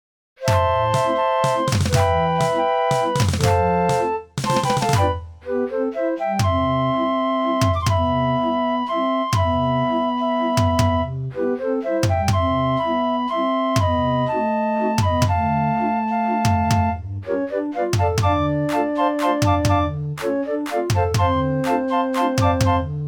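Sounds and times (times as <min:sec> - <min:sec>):
street organs playing a waltz: 0:00.4 - 0:10.6, 0:11.4 - 0:23.0.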